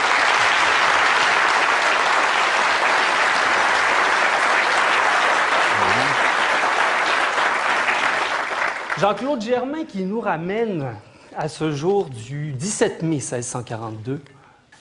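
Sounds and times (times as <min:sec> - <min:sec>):
crowd applauding to welcome a speaker: 0:00.0 - 0:09.4
speech: 0:09.0 - 0:14.7.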